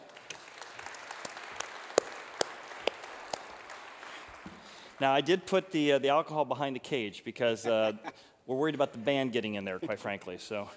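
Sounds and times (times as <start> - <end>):
small audience applause welcoming guests: 0.0 - 4.9
speech: 5.0 - 10.7
laughter: 7.5 - 8.2.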